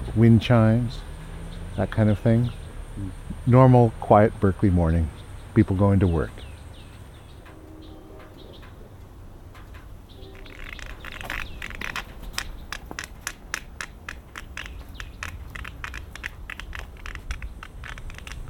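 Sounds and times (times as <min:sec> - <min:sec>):
speech: 0:00.2 - 0:01.1, 0:01.8 - 0:06.5
white cane tip tapping, echoing: 0:09.6 - 0:18.4.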